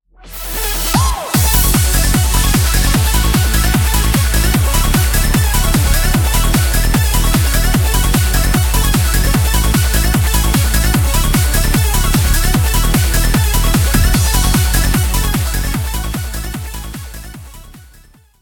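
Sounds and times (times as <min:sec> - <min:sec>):
background music: 0:00.2 - 0:18.3.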